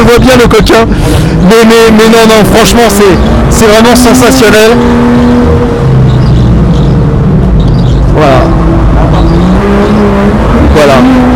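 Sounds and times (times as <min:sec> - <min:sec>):
BMW M2 sports car engine droning: 0:00.0 - 0:11.3
speech: 0:00.1 - 0:05.7, 0:08.2 - 0:08.7.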